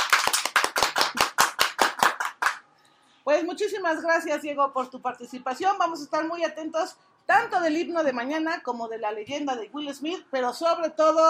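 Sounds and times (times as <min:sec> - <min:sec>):
sharp hand claps: 0:00.0 - 0:02.6
speech: 0:03.3 - 0:11.2.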